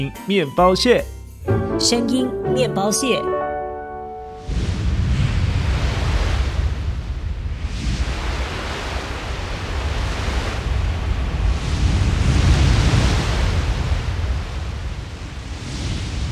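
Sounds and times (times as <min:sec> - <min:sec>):
speech: 0:00.0 - 0:03.4
ocean waves washing onto the shore: 0:03.7 - 0:16.3.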